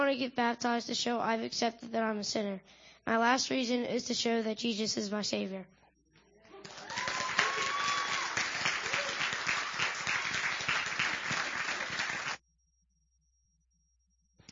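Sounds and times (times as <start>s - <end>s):
speech: 0.1s - 5.8s
audience applause: 6.6s - 12.4s.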